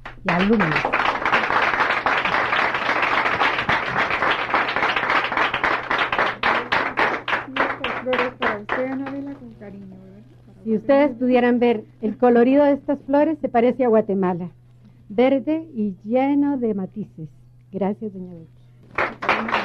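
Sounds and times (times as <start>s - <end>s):
audience applause: 0.0s - 9.4s, 19.0s - 19.6s
speech: 0.2s - 0.9s, 8.8s - 19.5s.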